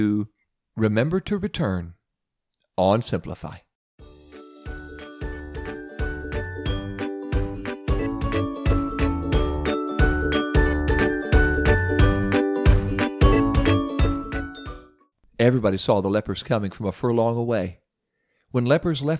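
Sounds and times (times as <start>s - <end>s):
speech: 0.0s - 2.0s, 2.8s - 3.6s, 15.4s - 17.8s, 18.5s - 19.1s
hand bell ringing: 7.9s - 14.9s.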